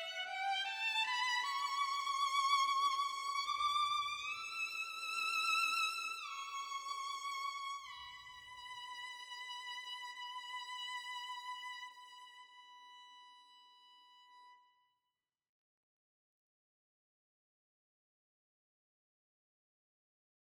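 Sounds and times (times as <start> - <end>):
violin through a plug-in switched off: 0.0 - 14.8.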